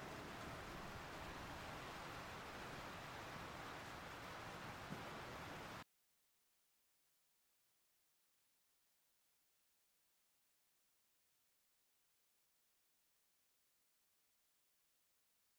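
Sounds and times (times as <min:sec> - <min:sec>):
rain heard from the house: 0:00.0 - 0:05.9.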